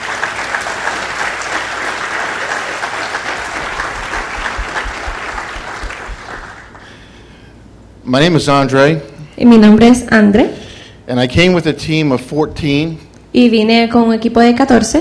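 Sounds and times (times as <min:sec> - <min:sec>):
congregation applause honoring two pastors at a bilingual church gathering: 0:00.0 - 0:07.2
speech: 0:08.1 - 0:15.0.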